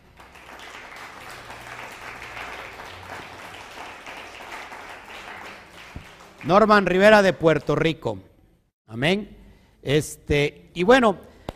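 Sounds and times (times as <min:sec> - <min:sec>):
applause: 0:00.0 - 0:07.4
speech: 0:06.4 - 0:08.3, 0:08.9 - 0:11.3.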